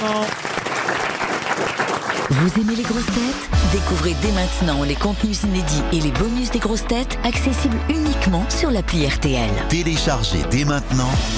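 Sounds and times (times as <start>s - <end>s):
audience applause: 0.0s - 3.3s
speech: 2.4s - 11.3s.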